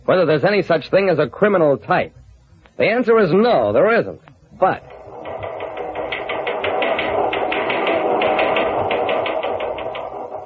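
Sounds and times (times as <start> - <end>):
speech: 0.1 - 2.2, 2.8 - 4.9
teletypewriter motor hum: 4.7 - 10.4
police teletypewriter printing: 4.8 - 10.4.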